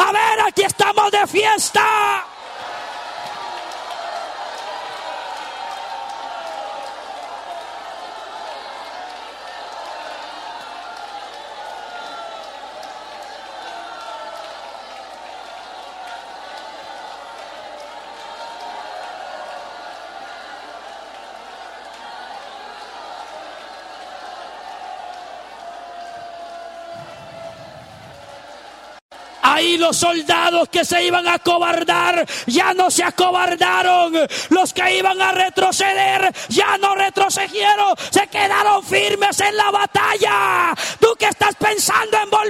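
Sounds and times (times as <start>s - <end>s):
audience shouting loudly: 0.0s - 42.4s
speech: 1.1s - 2.3s, 29.8s - 42.4s.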